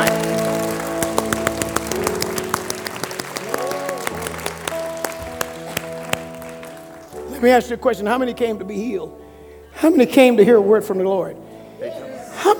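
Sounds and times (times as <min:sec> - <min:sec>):
audience clapping hands fast: 0:00.0 - 0:07.5
sustained musical tones: 0:00.0 - 0:11.4
speech: 0:07.4 - 0:09.2, 0:09.8 - 0:12.5.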